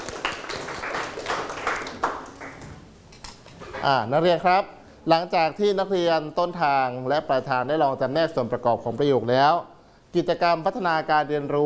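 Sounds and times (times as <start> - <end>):
students clapping: 0.0 - 2.8
speech: 3.8 - 11.6.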